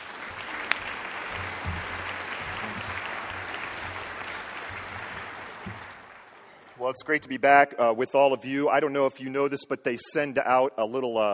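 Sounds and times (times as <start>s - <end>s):
audience applause welcoming a guest speaker to a school's Holiness Week: 0.0s - 6.9s
speech: 6.8s - 11.3s.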